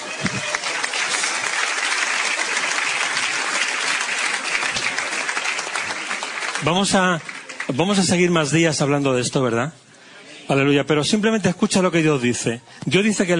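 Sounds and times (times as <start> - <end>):
crowd clapping: 0.0 - 8.6
speech: 6.6 - 9.9, 10.5 - 13.3.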